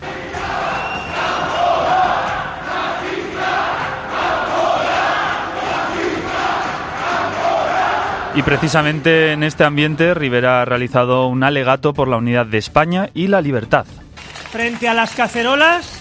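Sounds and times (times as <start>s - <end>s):
hostile crowd shouting insults and threats: 0.0s - 8.9s
speech: 8.4s - 15.9s.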